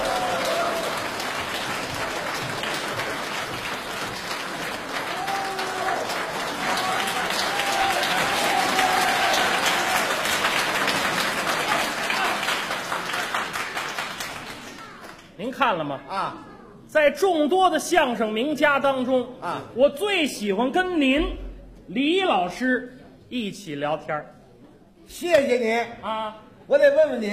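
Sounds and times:
audience applause: 0.0 - 15.3
speech: 15.6 - 24.4, 25.1 - 27.3.

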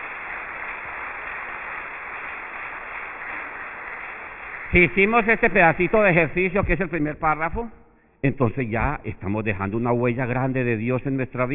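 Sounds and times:
audience applause: 0.0 - 5.6
speech: 4.7 - 11.5.

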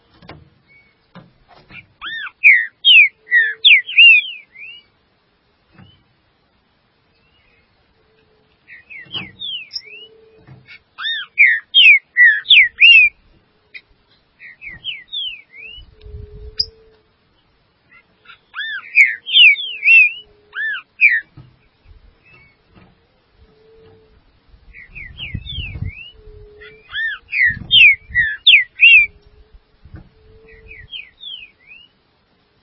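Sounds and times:
green-winged saltator whistling song: 1.7 - 4.9, 8.7 - 13.8, 14.4 - 16.9, 17.9 - 21.3, 24.7 - 29.2, 30.2 - 32.0.

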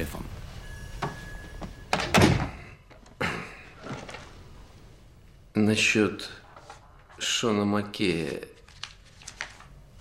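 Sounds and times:
speech: 0.0 - 0.2, 5.6 - 6.4, 7.2 - 8.6
office door being pushed shut: 1.9 - 2.6.

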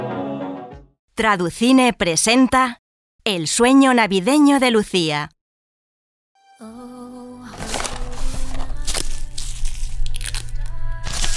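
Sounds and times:
speech: 1.2 - 5.4
steady sustained musical tone: 6.4 - 8.5
wrapping paper crinkling while wrapping a present: 7.6 - 11.3.

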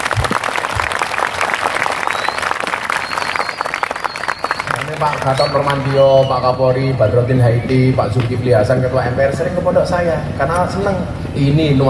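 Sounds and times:
audience applause at a religious speech event: 0.0 - 6.4
speech: 5.0 - 11.8.

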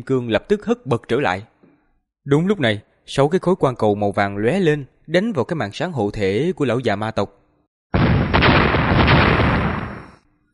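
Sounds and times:
speech: 0.0 - 1.5, 2.3 - 7.4
loud roaring crackling explosion: 8.0 - 10.2.

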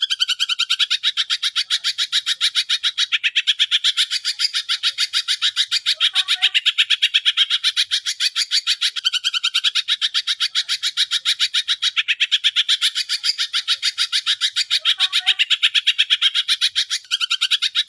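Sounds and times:
Greater green leafbird singing actively: 0.0 - 17.8.

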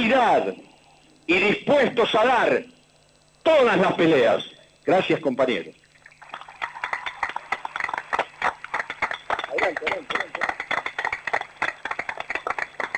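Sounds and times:
speech: 0.1 - 0.7, 1.3 - 2.8, 3.4 - 5.8
audience applause: 6.2 - 12.9.

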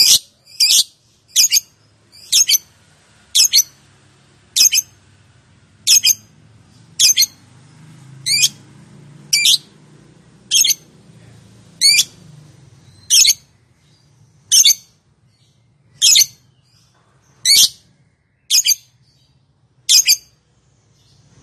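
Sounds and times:
lovebird giving sharp high chirps in konslet calling style: 0.0 - 2.7, 3.3 - 3.9, 4.5 - 5.0, 5.8 - 7.4, 8.2 - 8.6, 9.3 - 9.7, 10.5 - 10.9, 11.8 - 21.4.

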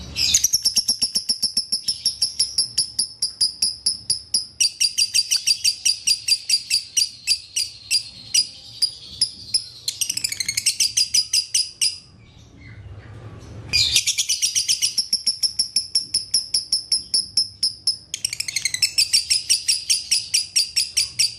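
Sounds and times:
lovebird chattering high piercing chirps: 0.2 - 12.1, 13.8 - 21.3.

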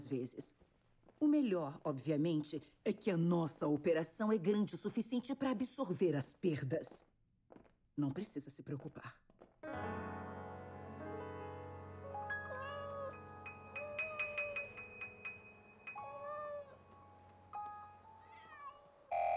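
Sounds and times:
speech: 0.1 - 7.1, 8.0 - 9.9
cat meowing on a rooftop: 12.4 - 14.9, 15.9 - 16.9, 18.0 - 19.0.

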